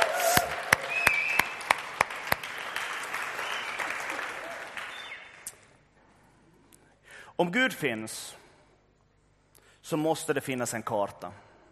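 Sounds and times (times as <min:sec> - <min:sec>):
audience applause: 0:00.0 - 0:05.4
speech: 0:07.4 - 0:08.4, 0:09.9 - 0:11.5.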